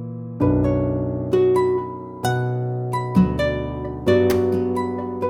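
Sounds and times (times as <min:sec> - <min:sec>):
sad music: 0:00.4 - 0:05.2.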